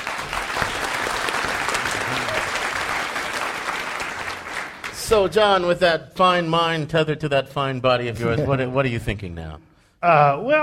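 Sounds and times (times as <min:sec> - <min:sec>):
live studio audience applause: 0:00.0 - 0:05.3
speech: 0:05.1 - 0:10.6.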